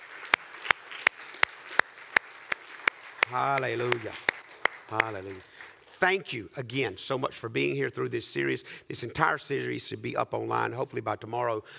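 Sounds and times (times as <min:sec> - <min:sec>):
audience clapping hands: 0:00.0 - 0:06.0
speech: 0:03.3 - 0:04.3, 0:04.9 - 0:11.7.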